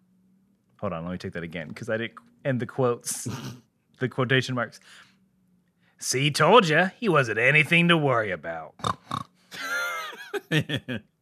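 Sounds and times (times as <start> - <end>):
speech: 0.8 - 5.1, 6.0 - 9.1, 10.3 - 11.1
person imitating a pig squealing and oinking: 3.1 - 3.6, 8.8 - 9.3
laughter: 9.6 - 11.0.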